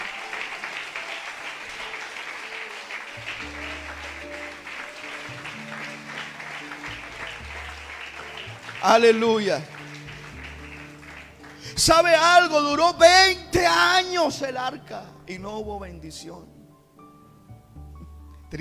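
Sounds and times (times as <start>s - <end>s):
audience applauding: 0.0s - 12.9s
organ or keyboard playing held chords: 0.0s - 16.9s
speech: 8.8s - 9.7s, 11.8s - 16.5s.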